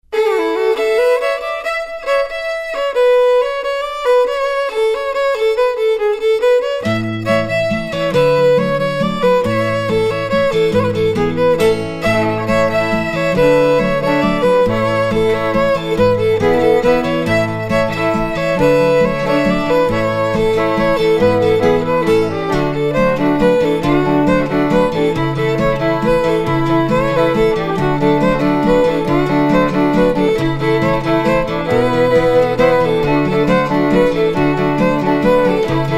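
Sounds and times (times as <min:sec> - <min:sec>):
cafe waltz music: 0:00.1 - 0:35.9.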